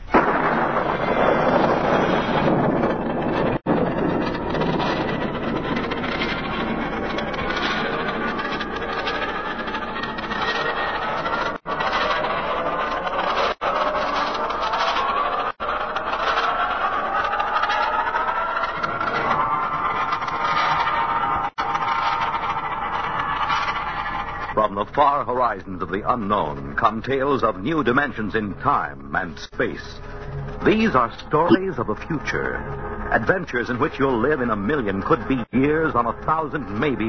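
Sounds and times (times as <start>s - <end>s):
rocket launch sound effect after countdown: 0.0s - 24.6s
speech: 25.0s - 37.0s.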